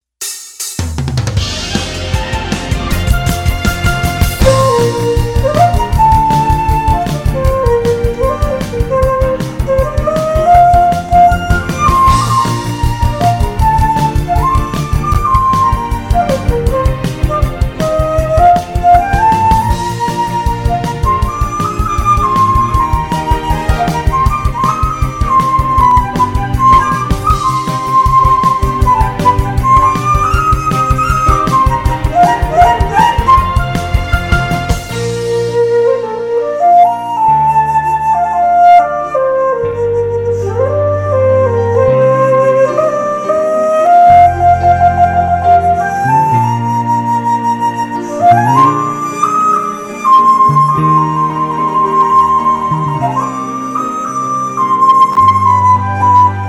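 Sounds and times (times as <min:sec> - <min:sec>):
flute: 0:01.4 - 0:56.4.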